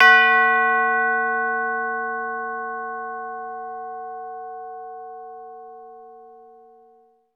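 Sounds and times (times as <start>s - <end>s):
chime: 0.0s - 7.3s.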